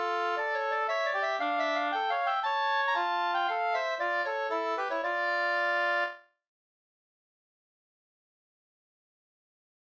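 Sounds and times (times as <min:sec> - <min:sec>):
two-part polska: 0:00.0 - 0:06.2.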